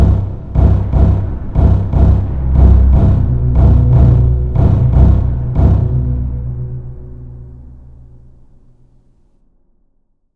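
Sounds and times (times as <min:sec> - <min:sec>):
heartbeat: 0:00.0 - 0:06.4
horror synth drone: 0:00.0 - 0:09.1.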